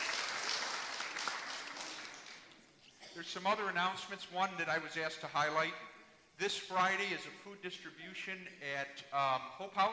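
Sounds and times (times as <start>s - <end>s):
congregation applause in a church: 0.0s - 2.6s
speech: 3.2s - 9.9s.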